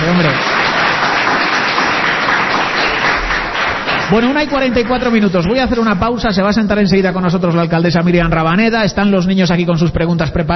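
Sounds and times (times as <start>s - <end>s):
audience applause: 0.0s - 5.8s
speech: 4.1s - 10.5s.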